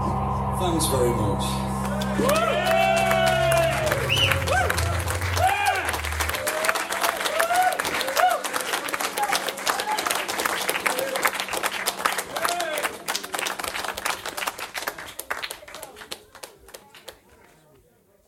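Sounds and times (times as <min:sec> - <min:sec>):
applause from people outside the studio: 0:00.1 - 0:17.4
speech: 0:00.6 - 0:02.8
cheers and whoops: 0:02.0 - 0:10.3.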